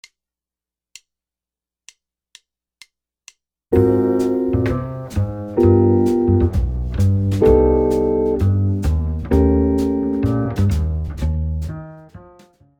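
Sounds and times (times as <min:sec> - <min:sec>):
jazz guitar comping: 0:03.7 - 0:12.6.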